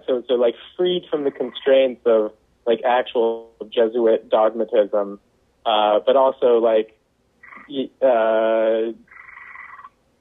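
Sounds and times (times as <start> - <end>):
speech: 0.1 - 7.0, 7.6 - 9.1
frog croaking: 1.2 - 1.7, 7.4 - 7.8, 9.0 - 9.9.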